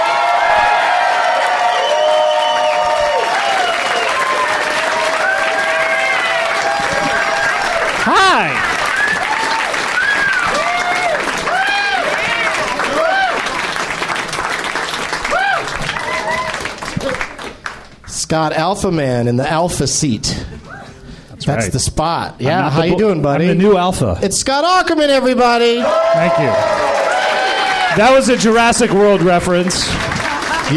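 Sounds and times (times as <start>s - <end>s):
audience whoops and shouts: 0.0s - 13.4s, 15.3s - 17.2s
audience clapping welcoming guests onto a stage: 0.0s - 18.2s, 25.9s - 30.7s
speech: 8.1s - 8.8s, 18.3s - 20.5s, 21.5s - 27.0s, 28.0s - 30.1s.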